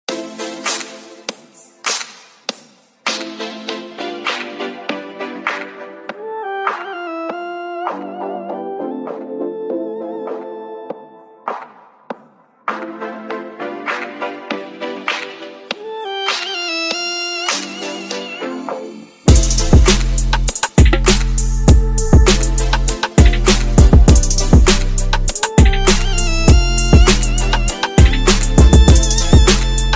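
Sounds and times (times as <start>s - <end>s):
trap beat: 19.3s - 29.9s.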